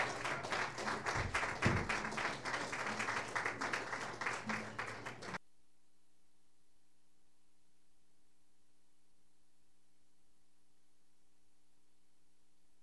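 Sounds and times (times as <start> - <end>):
audience applause welcoming a performer at a music evening: 0.0 - 5.4.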